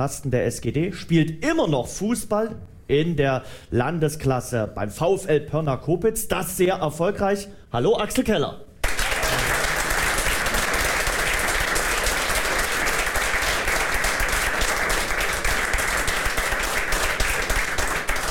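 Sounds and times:
speech: 0.0 - 8.7
audience applause: 8.8 - 18.3.

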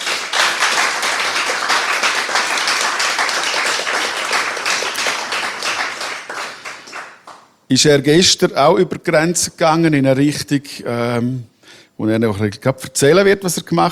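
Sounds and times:
audience applause: 0.0 - 7.4
speech: 7.7 - 13.9.

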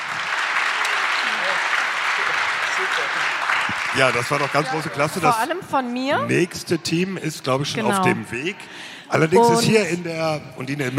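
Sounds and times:
audience applause: 0.0 - 6.7
speech: 2.8 - 10.9.

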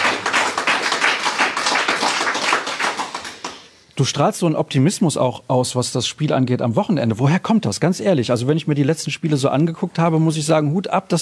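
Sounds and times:
audience applause: 0.0 - 3.7
speech: 4.0 - 11.2.

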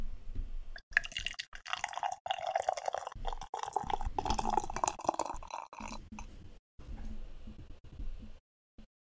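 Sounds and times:
beer pouring into a glass: 0.9 - 6.3.

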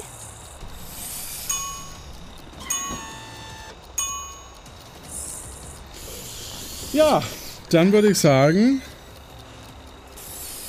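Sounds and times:
door opening mechanism: 2.6 - 3.8
speech: 6.9 - 8.9.

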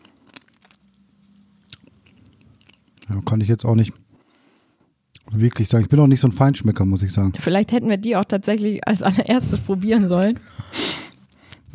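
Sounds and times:
person chewing a mouthful of plain chia seeds: 0.0 - 3.2
speech: 3.1 - 4.0, 5.4 - 10.8.

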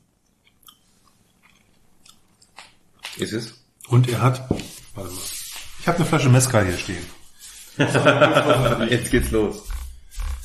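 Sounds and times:
quiet hiss: 0.0 - 10.4
chewing and biting of young vegetables being tasted: 0.3 - 3.2
speech: 3.2 - 7.2, 7.8 - 9.7
laughter: 7.7 - 9.5.

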